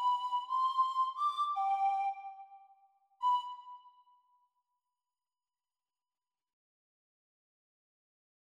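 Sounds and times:
descant recorder practice playing: 0:00.0 - 0:02.5, 0:03.2 - 0:03.9.

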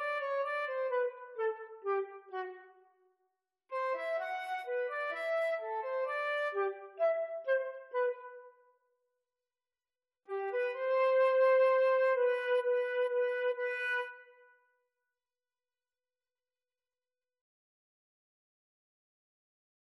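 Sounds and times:
flute duet playing a minuet: 0:00.0 - 0:02.8, 0:03.8 - 0:08.6, 0:10.4 - 0:14.2.

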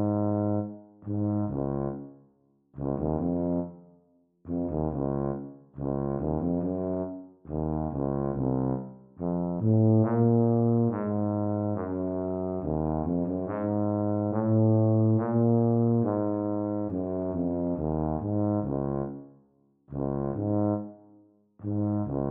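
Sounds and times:
Eb tuba duet practice: 0:00.0 - 0:02.0, 0:02.8 - 0:03.8, 0:04.5 - 0:19.2, 0:19.9 - 0:21.0, 0:21.6 - 0:22.2.

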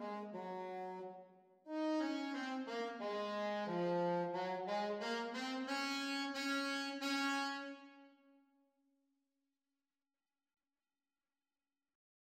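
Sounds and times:
saxophone duet playalong: 0:00.0 - 0:08.1.

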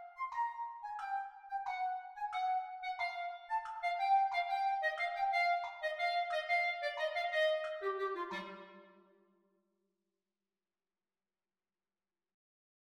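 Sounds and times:
clarinet duet at exam speed: 0:00.0 - 0:09.0.

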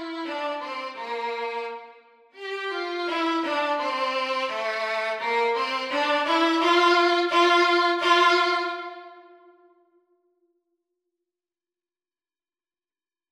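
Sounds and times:
violin duet: 0:00.0 - 0:09.5.

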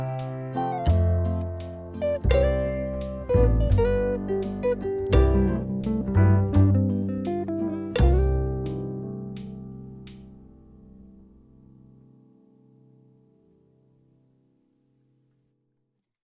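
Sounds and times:
drum kit playalong: 0:00.2 - 0:09.5.

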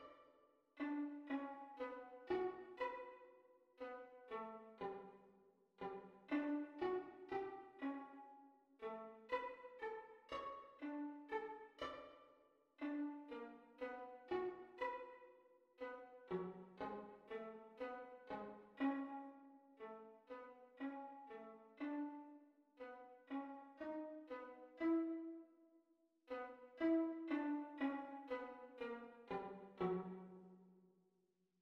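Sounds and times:
viola duet at practice speed: 0:00.8 - 0:03.2, 0:05.8 - 0:12.1, 0:12.8 - 0:15.2, 0:15.8 - 0:25.5, 0:26.3 - 0:30.5.

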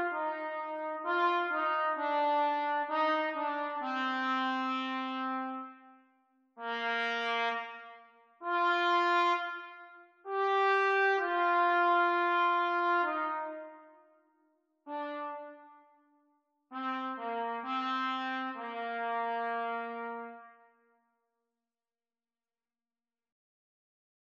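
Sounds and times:
trumpet duet practice: 0:00.0 - 0:06.0, 0:06.6 - 0:14.1, 0:14.9 - 0:16.0, 0:16.7 - 0:20.7.

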